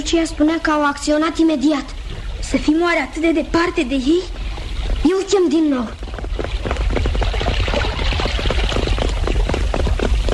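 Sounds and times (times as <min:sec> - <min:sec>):
speech: 0:00.0 - 0:04.4, 0:05.0 - 0:06.0
troop of horses galloping: 0:04.3 - 0:10.3.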